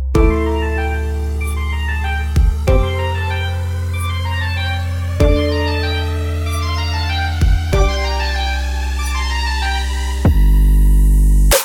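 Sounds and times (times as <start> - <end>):
trap beat: 0.2 - 11.6.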